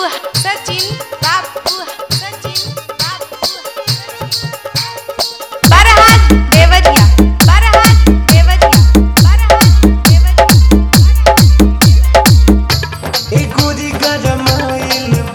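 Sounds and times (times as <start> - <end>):
hard electronic mix: 5.6 - 15.3.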